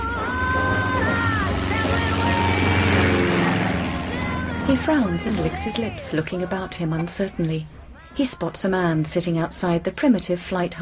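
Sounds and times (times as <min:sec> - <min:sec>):
yellow biplane taking off: 0:00.0 - 0:06.6
speech: 0:04.7 - 0:10.8.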